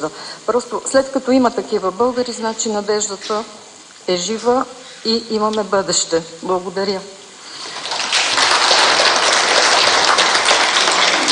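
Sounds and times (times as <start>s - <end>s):
speech: 0.0s - 7.7s
audience applause: 7.6s - 11.3s.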